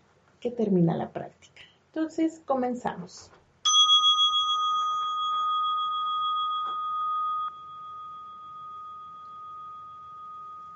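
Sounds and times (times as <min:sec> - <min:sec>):
speech: 0:00.4 - 0:03.4
small bell ringing to start practice: 0:03.6 - 0:10.7.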